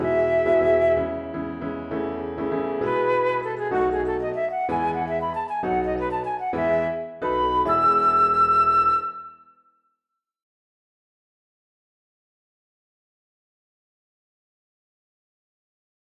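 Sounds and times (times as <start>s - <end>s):
flute and piano sonatina: 0.0s - 9.9s.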